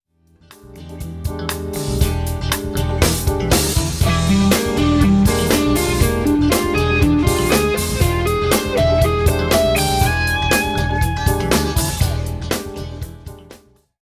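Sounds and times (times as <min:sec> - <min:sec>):
guitar playing: 0:00.4 - 0:13.7.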